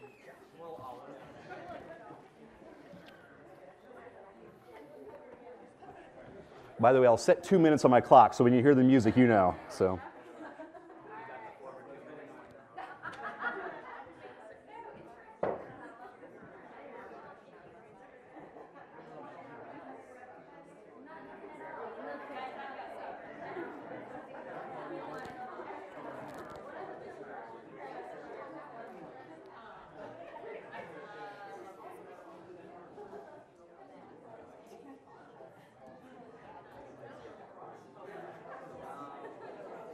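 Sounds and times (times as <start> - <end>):
audience members chatting in small groups: 0.0 - 39.9
speech: 6.8 - 10.1
laughter: 10.1 - 11.5, 12.7 - 14.4.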